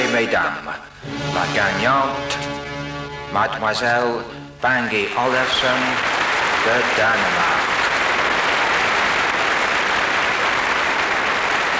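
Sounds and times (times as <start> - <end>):
speech: 0.1 - 2.7, 3.3 - 7.6
audience applause: 4.9 - 11.7.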